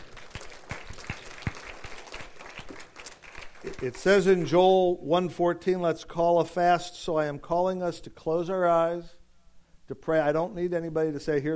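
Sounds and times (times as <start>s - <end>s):
audience applause: 0.0s - 3.9s
speech: 3.6s - 9.2s, 9.9s - 11.5s.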